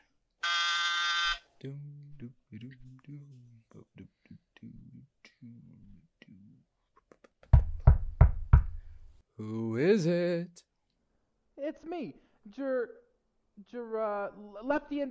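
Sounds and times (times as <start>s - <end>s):
harsh electronic door entry buzzer: 0.4s - 1.4s
speech: 1.6s - 6.7s, 9.4s - 10.7s, 11.6s - 13.0s, 13.6s - 15.0s
heavy knocks: 7.6s - 8.9s.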